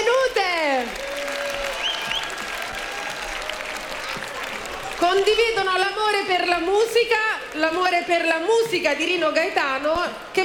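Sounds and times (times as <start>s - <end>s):
audience applause: 0.0s - 6.0s
speech: 5.1s - 10.4s.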